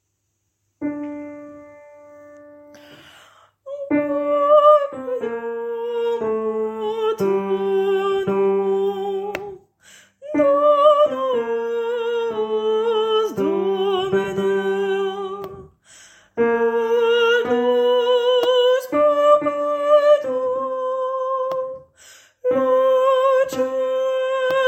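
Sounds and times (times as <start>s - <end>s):
tenor singing: 3.7s - 9.6s, 10.2s - 15.7s, 16.4s - 24.6s.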